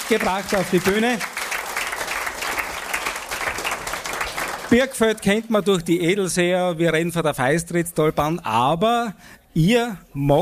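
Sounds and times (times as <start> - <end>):
audience applause: 0.0 - 5.0
speech: 0.1 - 1.3, 4.7 - 10.4.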